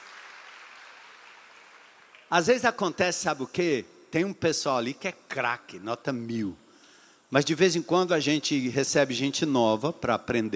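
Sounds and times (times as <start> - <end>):
audience applause: 0.0 - 2.4
speech: 2.3 - 6.6, 7.3 - 10.5.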